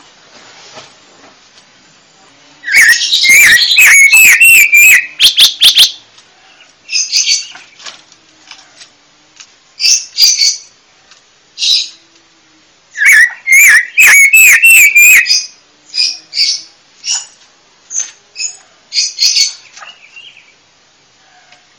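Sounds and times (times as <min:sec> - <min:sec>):
panca warna bird chirping: 0:02.6 - 0:07.9, 0:13.0 - 0:20.6.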